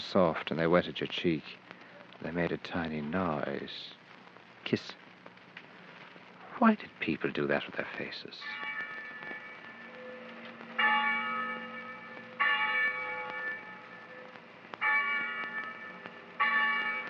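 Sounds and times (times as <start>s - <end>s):
speech: 0.1s - 1.6s, 2.2s - 4.0s, 4.6s - 5.0s, 6.6s - 8.7s
chapel bell ringing: 8.4s - 17.0s.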